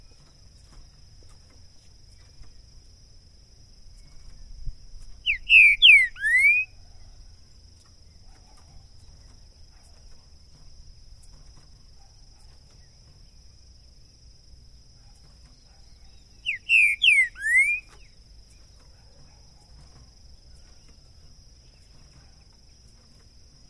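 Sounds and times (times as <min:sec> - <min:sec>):
green-winged saltator song of rich downslurred whistles: 0:05.2 - 0:06.8, 0:15.5 - 0:18.2.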